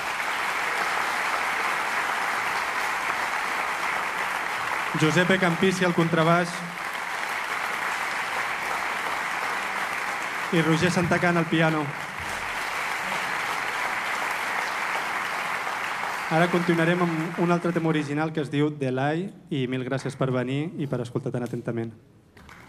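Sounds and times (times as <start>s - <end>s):
audience applause: 0.0s - 18.3s
speech: 4.9s - 6.8s, 10.5s - 12.1s, 16.3s - 22.1s.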